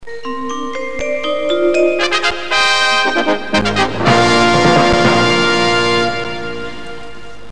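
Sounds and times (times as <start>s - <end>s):
jingle: 0.0s - 7.2s.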